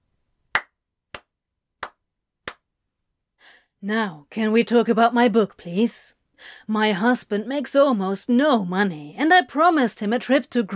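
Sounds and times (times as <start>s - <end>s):
hands clapping loudly: 0.5s - 2.7s
speech: 3.8s - 10.7s.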